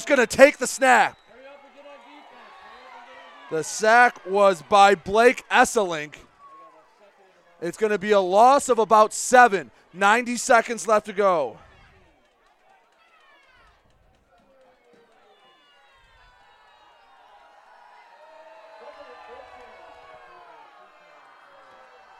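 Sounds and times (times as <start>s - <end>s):
speech: 0.0s - 1.2s, 3.5s - 6.3s, 7.6s - 11.6s
football crowd at Richmond versus Imlay City shouting unhappily: 0.0s - 13.8s, 14.6s - 22.1s.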